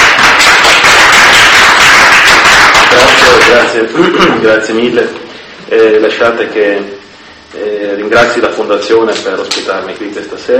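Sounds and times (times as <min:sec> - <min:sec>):
audience applause: 0:00.0 - 0:03.8
speech: 0:03.8 - 0:10.5.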